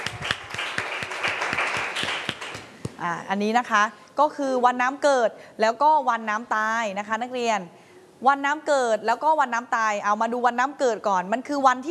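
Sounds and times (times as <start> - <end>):
applause: 0.0 - 2.8
speech: 3.0 - 11.8.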